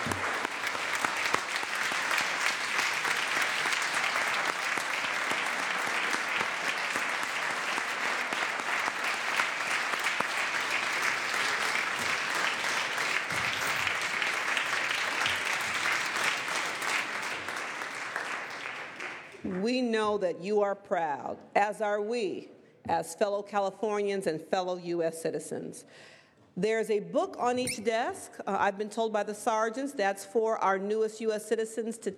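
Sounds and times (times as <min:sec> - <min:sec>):
round of applause: 0:00.0 - 0:19.6
speech: 0:20.0 - 0:32.1.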